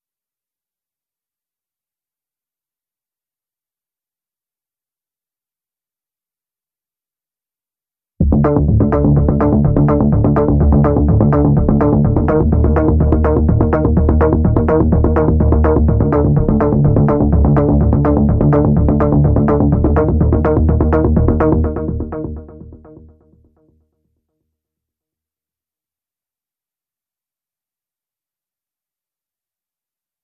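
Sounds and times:
synth bass: 0:08.2 - 0:23.6.

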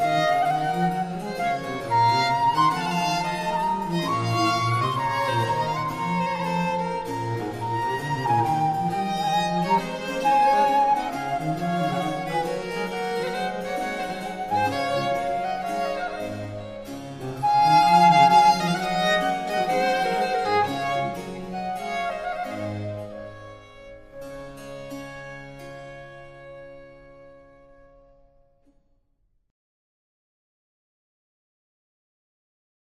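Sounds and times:
baroque traverso in a concerto in D major: 0:00.0 - 0:24.0
basso continuo in a concerto: 0:00.0 - 0:26.6
cello in a concerto in D major: 0:00.0 - 0:28.6
violin in a concerto: 0:00.0 - 0:28.6.

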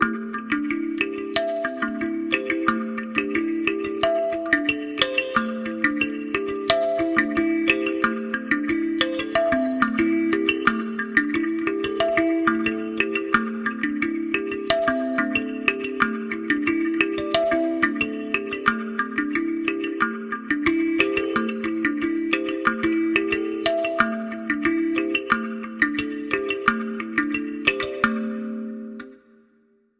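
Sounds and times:
kalimba ostinato: 0:00.0 - 0:29.4.

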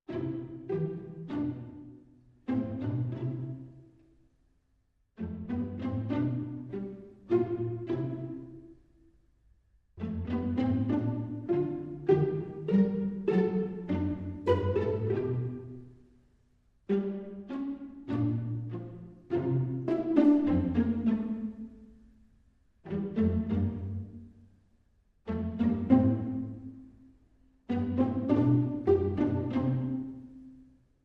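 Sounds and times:
strings: 0:00.1 - 0:04.4, 0:05.2 - 0:09.2, 0:10.0 - 0:31.0.

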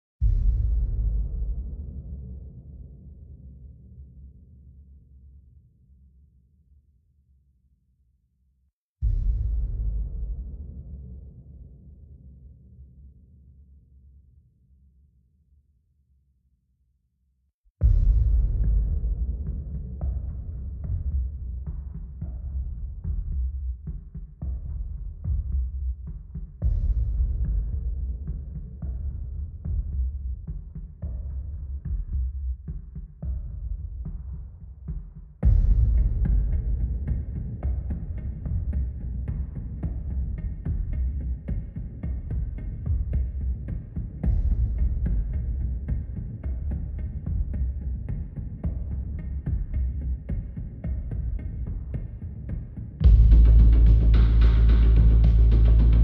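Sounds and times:
drums: 0:00.2 - 0:03.4, 0:09.0 - 0:11.7, 0:17.8 - 0:56.0
bass: 0:00.2 - 0:04.0, 0:09.0 - 0:12.7, 0:17.8 - 0:32.5, 0:35.4 - 0:48.0, 0:53.0 - 0:56.0.

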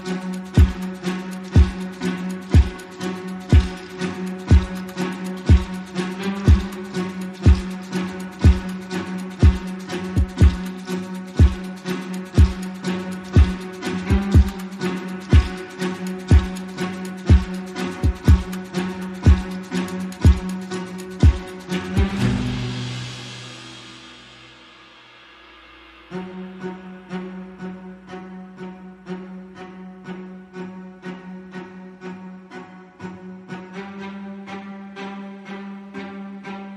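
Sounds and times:
drums: 0:00.0 - 0:27.6
strings: 0:00.0 - 0:36.7.

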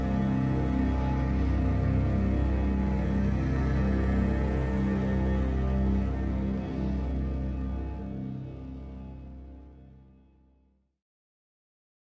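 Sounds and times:
slow drones: 0:00.0 - 0:09.4.

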